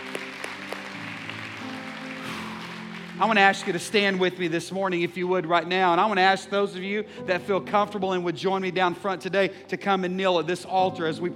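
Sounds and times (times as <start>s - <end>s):
crowd applauding: 0.0s - 5.7s
speech: 3.2s - 11.3s.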